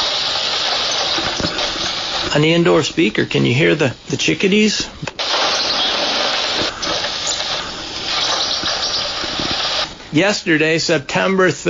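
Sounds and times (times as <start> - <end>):
drizzly rain: 0.0 - 3.1, 5.2 - 10.0
speech: 2.4 - 5.1, 10.1 - 11.6.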